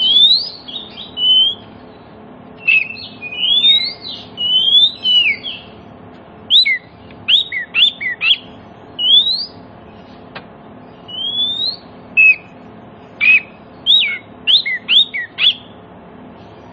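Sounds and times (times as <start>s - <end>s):
Oriental magpie-robin whistled song: 0.0s - 2.0s, 2.6s - 5.8s, 6.5s - 10.0s, 10.8s - 12.6s, 13.2s - 15.8s.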